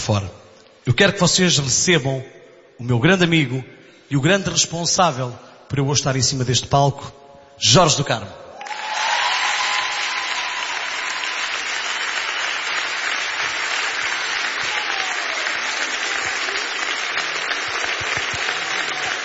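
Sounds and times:
speech: 0.0s - 8.8s
audience applause: 8.6s - 19.2s.

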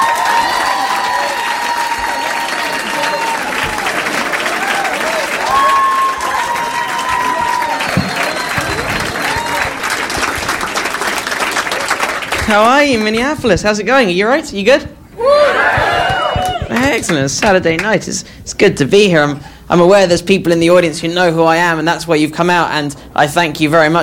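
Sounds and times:
crowd whooping and cheering: 0.0s - 12.4s, 15.2s - 16.9s
crowd applauding: 0.0s - 13.3s, 15.4s - 17.9s
whistles: 7.0s - 9.7s
speech: 12.5s - 15.8s, 16.8s - 24.0s.

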